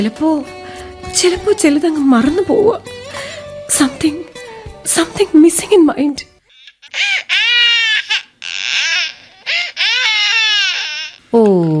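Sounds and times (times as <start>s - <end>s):
speech: 0.0s - 2.9s, 3.7s - 4.2s, 4.8s - 6.3s, 11.3s - 11.7s
baby crying: 6.5s - 11.4s.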